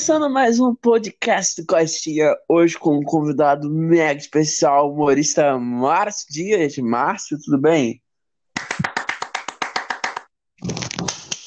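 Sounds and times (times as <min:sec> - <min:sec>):
speech: 0:00.0 - 0:08.0
applause: 0:08.6 - 0:11.4.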